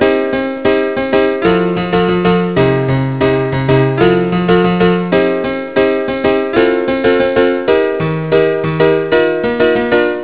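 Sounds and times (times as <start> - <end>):
piano: 0.0 - 10.2.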